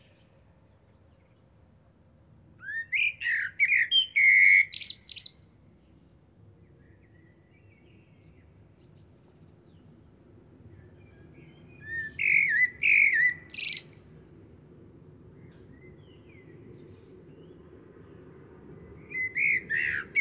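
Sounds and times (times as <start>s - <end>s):
common blackbird song: 0.0s - 1.8s, 2.6s - 14.4s, 15.3s - 20.1s.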